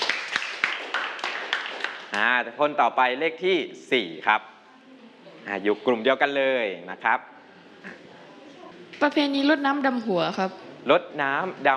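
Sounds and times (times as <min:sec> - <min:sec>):
classroom clapping: 0:00.0 - 0:02.3
speech: 0:02.1 - 0:04.5, 0:05.4 - 0:08.0, 0:09.0 - 0:11.7.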